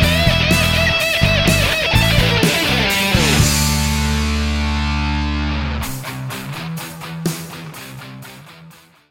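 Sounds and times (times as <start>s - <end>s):
hard rock music: 0.0s - 9.0s.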